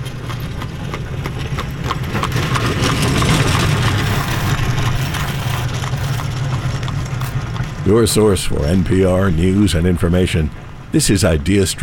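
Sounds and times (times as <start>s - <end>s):
horse hooves clip-clopping: 0.0s - 8.3s
low traffic rumble: 0.0s - 11.8s
speech: 7.9s - 11.8s.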